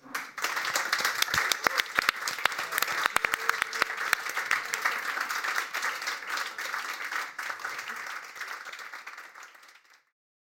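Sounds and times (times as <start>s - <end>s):
audience applause: 0.0s - 10.0s.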